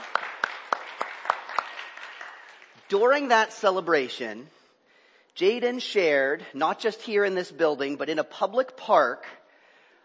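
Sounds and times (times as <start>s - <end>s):
audience applauding: 0.0s - 2.9s
speech: 2.9s - 4.6s, 5.4s - 9.4s.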